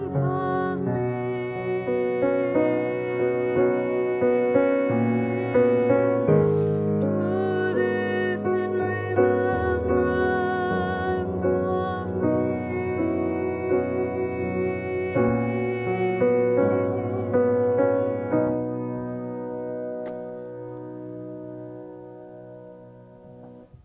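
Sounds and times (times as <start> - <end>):
tenor singing: 0.0 - 19.0.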